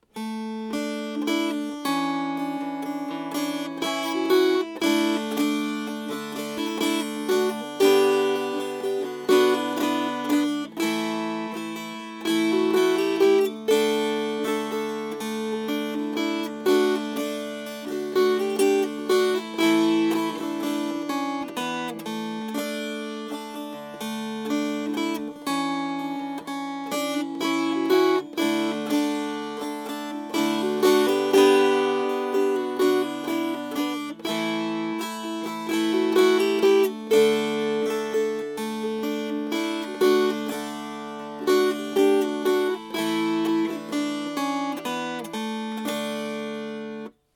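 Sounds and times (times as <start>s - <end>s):
strummed strings: 0.0s - 47.3s.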